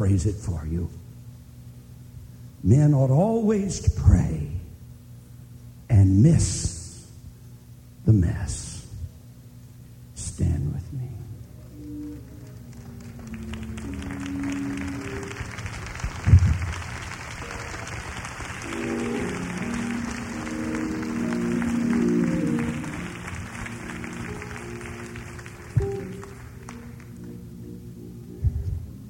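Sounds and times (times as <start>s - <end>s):
speech: 0.0s - 1.1s, 2.6s - 4.6s, 5.9s - 6.7s, 8.1s - 8.7s, 10.4s - 11.1s
audience clapping: 11.6s - 27.5s.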